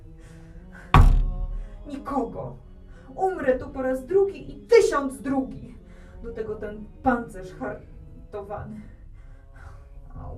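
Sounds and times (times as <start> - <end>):
knocking on a door: 1.0 - 1.4
speech: 1.9 - 9.0, 10.2 - 10.3.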